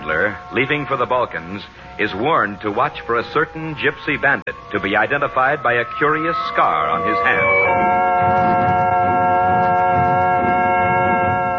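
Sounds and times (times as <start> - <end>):
speech: 0.3 - 8.8
train whistle: 6.5 - 11.5.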